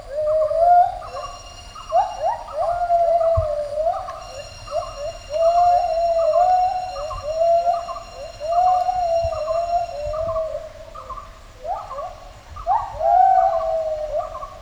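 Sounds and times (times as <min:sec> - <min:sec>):
gibbon duet hooting: 0:00.0 - 0:14.4.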